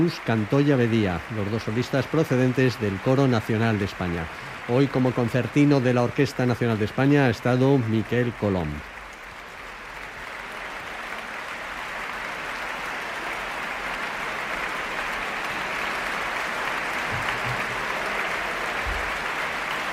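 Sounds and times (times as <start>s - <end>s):
speech: 0.0s - 8.9s
large audience applauding an orchestra performance in a hall: 0.0s - 19.9s.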